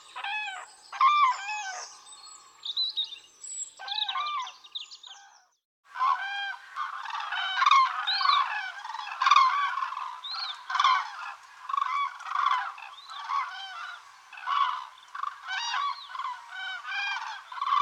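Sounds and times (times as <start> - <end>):
flock of common cranes calling: 0.0 - 2.0, 6.0 - 17.8.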